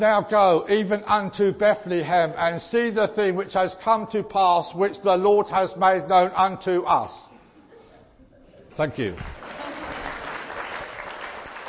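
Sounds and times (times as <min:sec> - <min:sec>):
speech: 0:00.0 - 0:07.3, 0:08.8 - 0:09.4
audience applause: 0:09.1 - 0:11.6.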